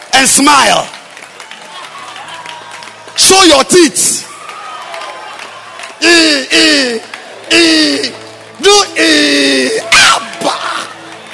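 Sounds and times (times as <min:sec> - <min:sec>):
audience clapping hands: 0:00.0 - 0:11.3
speech: 0:00.2 - 0:01.0, 0:03.3 - 0:04.3, 0:06.0 - 0:10.2.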